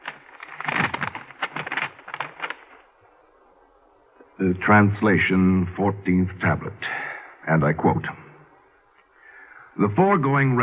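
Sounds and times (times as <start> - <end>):
envelope being opened with paper tearing: 0.0 - 2.8
speech: 4.4 - 8.3, 9.8 - 10.6.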